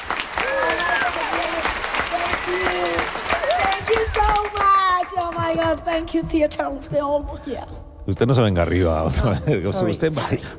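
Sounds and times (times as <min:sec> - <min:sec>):
theater audience applause: 0:00.0 - 0:05.4
speech: 0:05.6 - 0:10.5.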